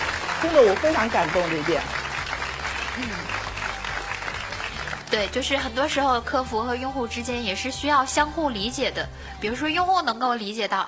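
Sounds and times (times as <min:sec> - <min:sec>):
audience applause for a company's users: 0:00.0 - 0:06.0
speech: 0:00.4 - 0:02.0, 0:03.0 - 0:03.5, 0:05.1 - 0:10.8.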